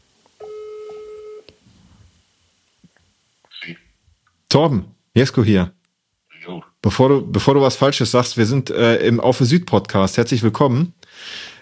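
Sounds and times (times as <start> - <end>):
telephone ringing tone on outgoing call: 0.4 - 1.5
speech: 4.6 - 5.8, 6.5 - 11.4.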